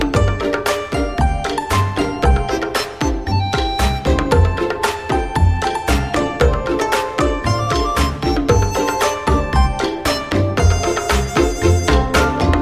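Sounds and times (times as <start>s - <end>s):
game background music: 0.0s - 12.6s.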